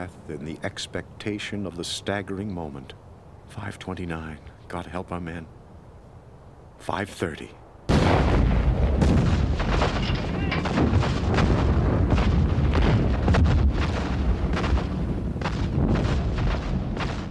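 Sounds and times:
speech: 0:00.0 - 0:05.6, 0:06.8 - 0:07.6
artillery barrage of guns and mortars: 0:07.9 - 0:17.3.

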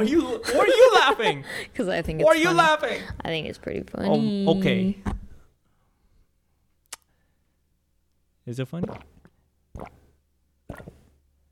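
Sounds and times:
speech: 0:00.0 - 0:05.2, 0:08.5 - 0:09.1, 0:09.8 - 0:10.0
person gulping a drink: 0:08.8 - 0:11.2.

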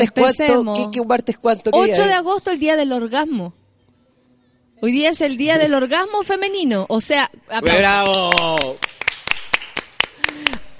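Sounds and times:
speech: 0:00.0 - 0:03.6, 0:04.8 - 0:09.1
small group of people clapping: 0:07.7 - 0:10.7.

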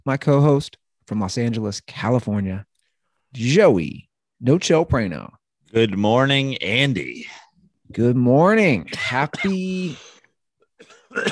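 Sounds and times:
speech: 0:00.0 - 0:02.7, 0:03.3 - 0:10.1
man coughing: 0:08.9 - 0:11.3.

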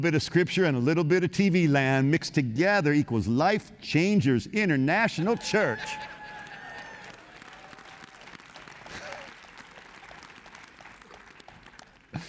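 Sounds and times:
speech: 0:00.0 - 0:06.2
audience single clapping: 0:05.2 - 0:12.2.

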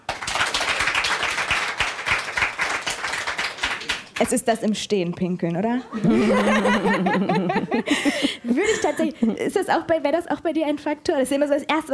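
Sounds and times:
audience of women clapping: 0:00.0 - 0:04.5
speech: 0:04.2 - 0:11.9
laughter: 0:05.8 - 0:09.5.

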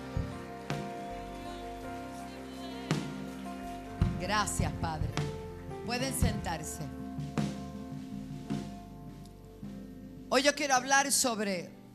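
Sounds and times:
sustained organ-like musical tones: 0:00.0 - 0:05.9
crowd clapping: 0:00.0 - 0:06.6
speech: 0:04.2 - 0:07.0, 0:10.3 - 0:11.8.

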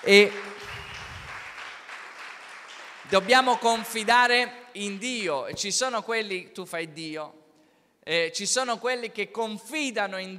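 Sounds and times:
speech: 0:00.0 - 0:00.5, 0:03.1 - 0:07.4, 0:08.0 - 0:10.3
crowd applauding: 0:00.0 - 0:04.0.

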